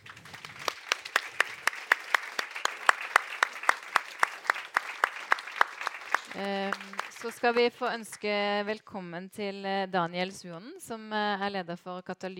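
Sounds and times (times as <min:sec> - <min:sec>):
audience applause: 0:00.0 - 0:08.6
speech: 0:06.4 - 0:12.3.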